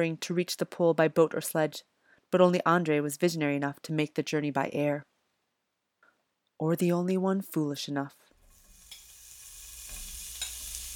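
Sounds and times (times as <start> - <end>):
speech: 0.0 - 5.1, 6.6 - 8.2
polar bear meat sizzling in a pot over a fire: 8.4 - 10.9.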